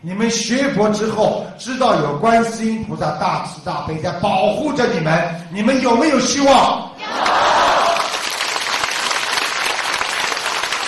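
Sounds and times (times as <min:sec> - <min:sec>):
speech: 0:00.0 - 0:07.4
voices cheering: 0:07.0 - 0:08.3
audience applauding: 0:07.1 - 0:10.8.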